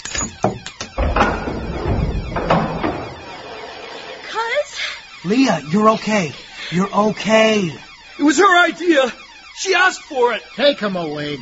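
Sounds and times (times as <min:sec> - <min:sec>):
padlocked door being forced open: 0:00.0 - 0:04.2
speech: 0:05.3 - 0:11.3.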